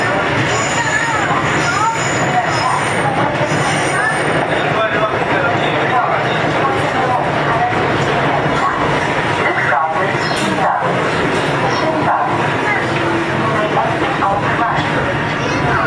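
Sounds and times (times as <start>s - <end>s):
chopper-controlled Line 2 subway train running in Seoul: 0.0s - 15.8s.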